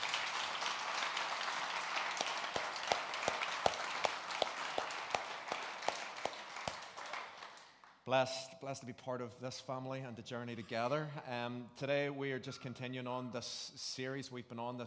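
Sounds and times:
audience round of applause: 0:00.0 - 0:07.9
speech: 0:08.1 - 0:14.8.

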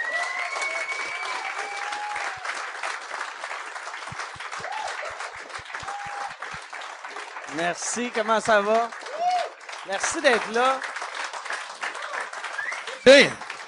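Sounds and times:
audience applause: 0:00.0 - 0:13.6
speech: 0:07.5 - 0:09.0, 0:09.9 - 0:10.9, 0:13.0 - 0:13.4.

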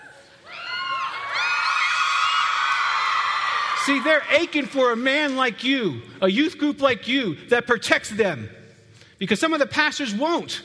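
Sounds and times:
crowd of women cheering and whooping: 0:00.0 - 0:04.2
speech: 0:03.9 - 0:08.6, 0:09.2 - 0:10.6.

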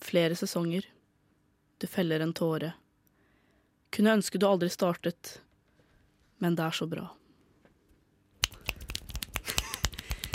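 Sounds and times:
speech: 0:00.1 - 0:01.0, 0:01.8 - 0:02.8, 0:04.0 - 0:05.4, 0:06.4 - 0:07.2
finger snapping as applause: 0:08.4 - 0:10.3.

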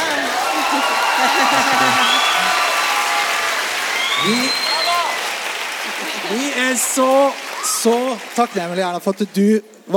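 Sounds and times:
laughter: 0:00.0 - 0:02.8, 0:05.8 - 0:07.0
faint cheers: 0:00.0 - 0:05.4, 0:07.3 - 0:08.8
audience applause: 0:00.0 - 0:09.5
speech: 0:07.0 - 0:09.9.

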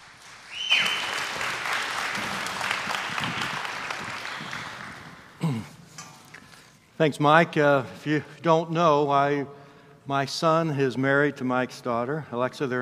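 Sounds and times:
audience applause welcoming a guest speaker: 0:00.0 - 0:05.6
sharp whistle: 0:00.5 - 0:01.2
speech: 0:07.0 - 0:12.8.

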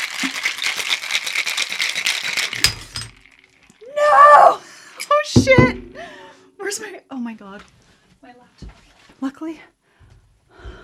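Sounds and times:
ice rattling in cocktail shaker: 0:00.0 - 0:04.3
speech: 0:07.3 - 0:09.8.

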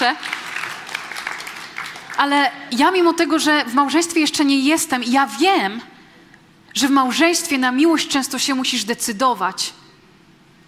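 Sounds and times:
speech: 0:00.0 - 0:00.4, 0:02.2 - 0:05.9, 0:06.8 - 0:09.8
audience applause: 0:00.0 - 0:02.2.

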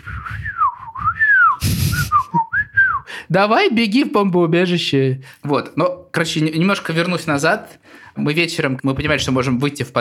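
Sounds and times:
person whistling a warbling birdsong imitation: 0:00.0 - 0:03.1
speech: 0:03.3 - 0:09.9.

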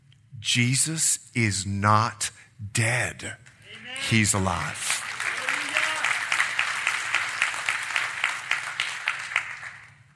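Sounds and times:
speech: 0:00.4 - 0:05.0
audience applause: 0:03.8 - 0:10.0.

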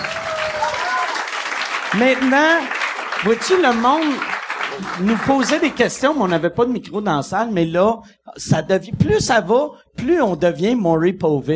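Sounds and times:
audience applause: 0:00.0 - 0:06.4
speech: 0:02.0 - 0:11.5.

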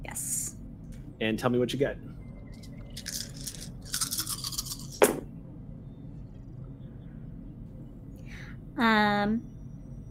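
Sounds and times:
speech: 0:01.2 - 0:02.1, 0:08.8 - 0:09.5
seven dice rattling: 0:03.0 - 0:05.0.

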